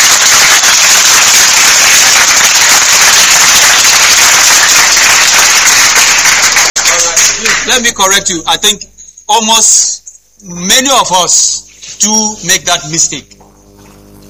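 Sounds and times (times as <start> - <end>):
audience applause: 0.0 - 7.8
speech: 7.8 - 9.9, 10.7 - 13.4.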